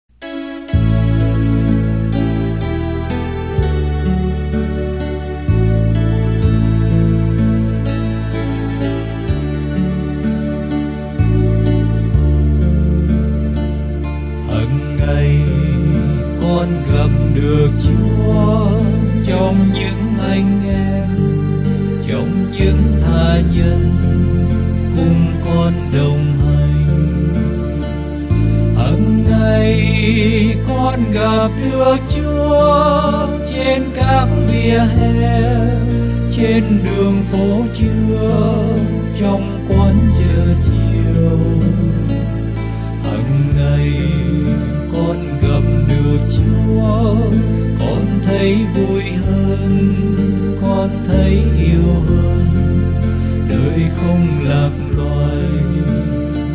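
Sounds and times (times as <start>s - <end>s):
bass: 0.0s - 56.5s.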